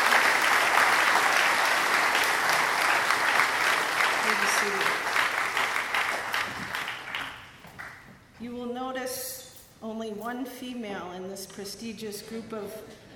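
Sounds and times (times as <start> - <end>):
audience applause: 0.0 - 8.0
speech: 10.3 - 13.0.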